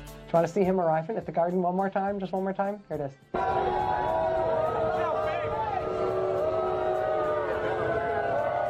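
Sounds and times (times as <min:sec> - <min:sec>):
speech: 0:00.3 - 0:04.3
crowd booing at arrival in New York: 0:03.4 - 0:08.6.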